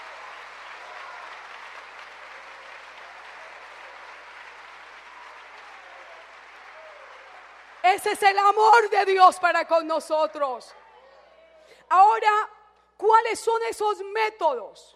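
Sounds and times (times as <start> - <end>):
audience applause: 0.0 - 9.2
speech: 7.8 - 10.8, 11.9 - 14.9.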